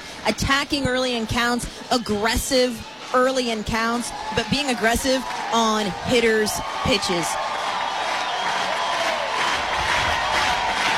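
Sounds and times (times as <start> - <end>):
speech: 0.2 - 7.5
stadium crowd cheering: 2.0 - 10.9.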